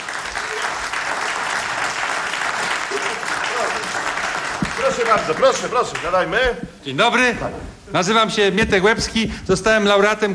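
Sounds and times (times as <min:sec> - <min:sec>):
studio audience applause: 0:00.0 - 0:06.4
speech: 0:05.0 - 0:10.3.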